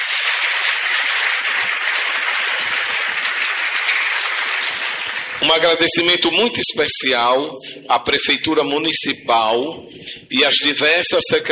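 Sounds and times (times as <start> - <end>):
crowd applauding: 0.0 - 6.3
speech: 5.4 - 11.4.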